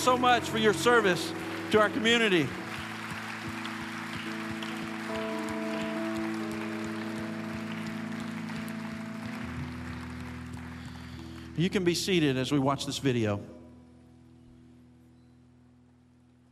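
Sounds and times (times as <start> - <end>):
speech: 0.0 - 2.6, 11.6 - 13.6
audience applause: 0.0 - 11.9.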